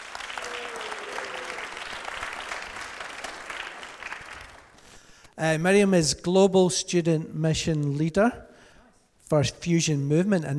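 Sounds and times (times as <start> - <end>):
audience applause welcoming a guest speaker at an evening event: 0.0 - 4.8
speech: 5.4 - 8.5, 9.3 - 10.5.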